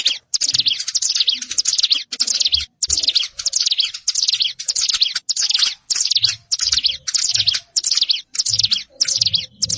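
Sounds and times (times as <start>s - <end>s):
plain prinia song: 0.0s - 9.7s.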